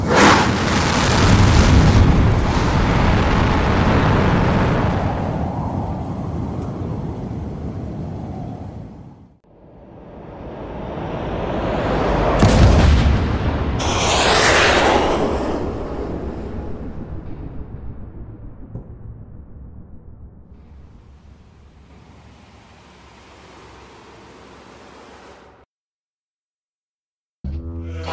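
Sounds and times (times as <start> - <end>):
powerful explosion: 0.0 - 6.0, 9.5 - 22.8.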